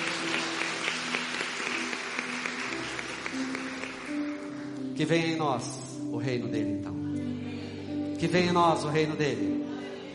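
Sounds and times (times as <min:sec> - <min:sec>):
crowd applause: 0:00.0 - 0:04.8
speech: 0:05.0 - 0:07.0, 0:08.2 - 0:09.6.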